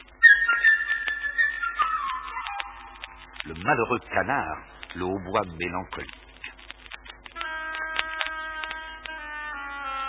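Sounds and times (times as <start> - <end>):
light chirping flute melody: 0.2 - 3.4, 7.4 - 10.0
speech: 3.4 - 6.2.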